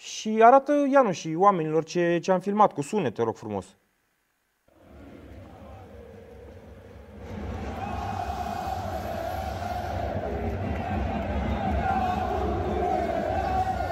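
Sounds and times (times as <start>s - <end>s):
speech: 0.2s - 3.8s
football fans chanting in stadium stands: 4.8s - 13.9s.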